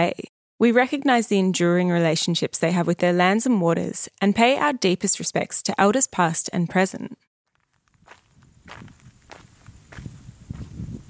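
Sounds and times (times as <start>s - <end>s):
speech: 0.0s - 7.3s
footsteps crunching across a dry light chocolate-brown clay pan: 7.5s - 11.0s.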